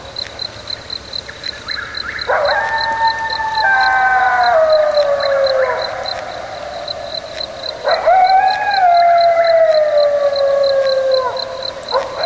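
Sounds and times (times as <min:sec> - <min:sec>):
coyote howls and yips: 0:02.0 - 0:06.9, 0:07.8 - 0:12.2.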